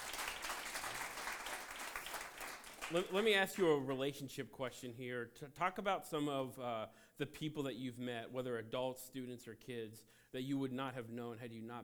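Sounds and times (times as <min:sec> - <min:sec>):
crowd clapping: 0:00.0 - 0:03.9
speech: 0:02.9 - 0:11.8.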